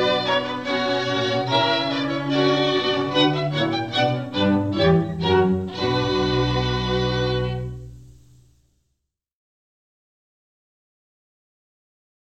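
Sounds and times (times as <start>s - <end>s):
orchestral baroque suite: 0.0s - 8.4s.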